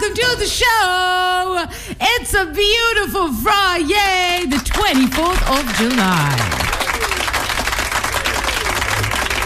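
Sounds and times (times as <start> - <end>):
speech: 0.1 - 6.7
audience applause: 4.5 - 9.4.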